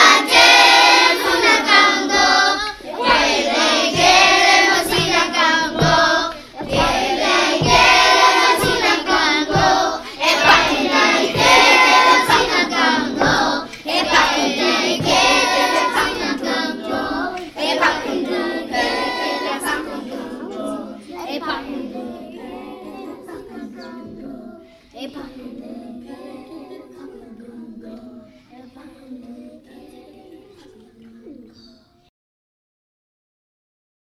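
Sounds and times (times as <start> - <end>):
laughter: 0.2 - 28.1
five Congo drums playing: 3.0 - 20.1.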